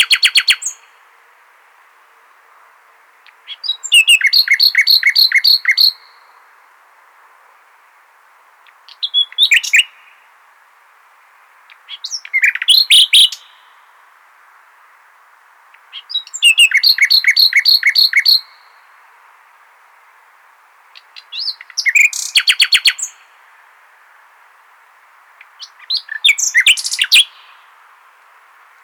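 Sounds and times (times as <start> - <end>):
common nightingale song: 0.0 - 28.8.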